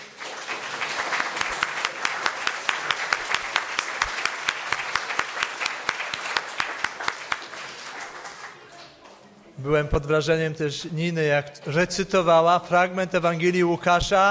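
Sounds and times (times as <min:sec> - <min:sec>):
audience applause for actors: 0:00.0 - 0:09.0
speech: 0:09.6 - 0:14.2.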